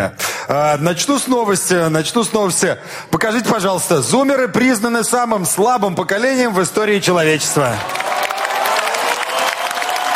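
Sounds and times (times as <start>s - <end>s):
speech: 0.0s - 8.2s
crowd noise: 6.2s - 10.1s
audience applause at a stand-up comedy show: 7.5s - 10.1s.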